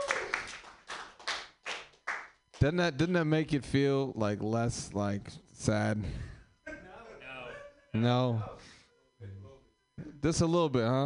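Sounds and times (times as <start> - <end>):
round of applause: 0.0 - 2.4
speech: 2.6 - 6.4, 7.9 - 9.4, 10.0 - 11.0.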